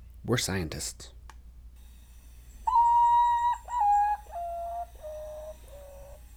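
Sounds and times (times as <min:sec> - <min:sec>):
speech: 0:00.2 - 0:01.2
Common Potoo call: 0:02.6 - 0:06.3.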